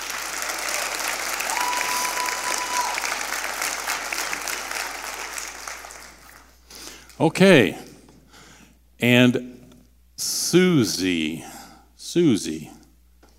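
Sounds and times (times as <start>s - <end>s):
sustained applause from a large audience: 0.0s - 6.7s
speech: 7.2s - 7.8s, 9.0s - 9.6s, 10.2s - 11.5s, 12.1s - 12.8s.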